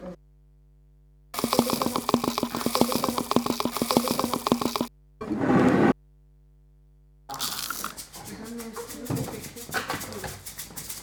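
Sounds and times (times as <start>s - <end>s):
faint steady hum: 0.5s - 5.2s
rain stick being tilted: 1.3s - 4.9s, 7.3s - 11.0s.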